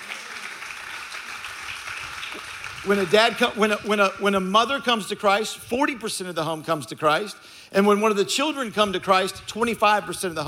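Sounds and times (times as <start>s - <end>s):
crowd clapping: 0.0s - 4.5s
speech: 2.3s - 10.4s.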